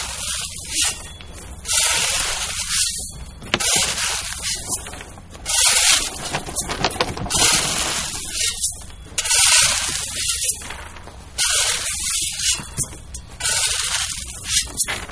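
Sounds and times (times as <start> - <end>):
gravel being shoveled: 0.0 - 15.1.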